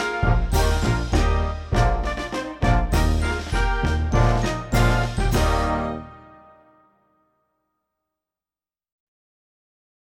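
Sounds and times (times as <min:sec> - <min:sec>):
military band playing a march: 0:00.0 - 0:06.5.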